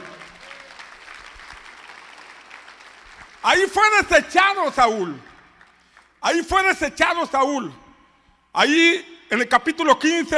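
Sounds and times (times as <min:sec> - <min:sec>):
audience applauding: 0:00.0 - 0:03.6
speech: 0:03.4 - 0:05.3, 0:06.2 - 0:07.8, 0:08.5 - 0:10.3.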